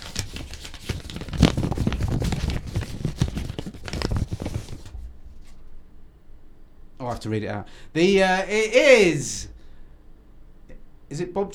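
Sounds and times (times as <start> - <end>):
envelope being torn open: 0.0 - 4.9
speech: 7.1 - 9.5, 11.1 - 11.5.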